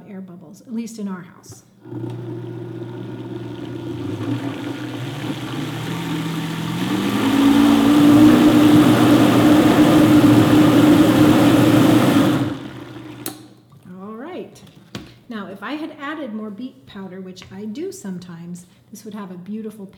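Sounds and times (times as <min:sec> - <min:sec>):
speech: 0:00.1 - 0:02.9, 0:17.4 - 0:19.9
blender running on variable speed four blending yogurt: 0:01.8 - 0:13.6.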